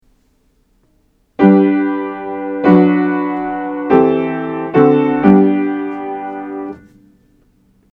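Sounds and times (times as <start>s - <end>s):
root position triad chords: 1.4s - 7.0s.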